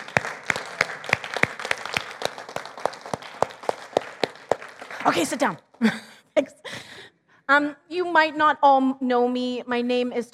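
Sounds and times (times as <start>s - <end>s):
church audience applause: 0.0s - 5.8s
speech: 5.0s - 6.6s, 7.5s - 10.3s.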